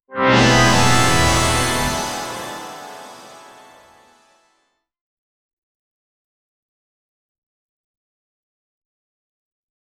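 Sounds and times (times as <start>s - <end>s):
short aerial logo animation sting: 0.2s - 4.4s.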